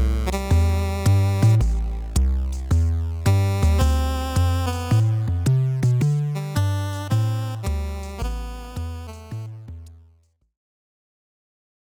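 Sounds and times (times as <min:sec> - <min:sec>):
basement jazz: 0:00.0 - 0:09.5.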